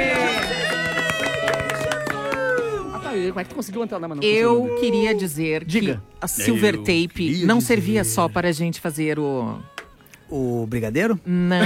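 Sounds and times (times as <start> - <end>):
applause: 0.0 - 4.1
speech: 3.4 - 9.7, 10.3 - 11.6.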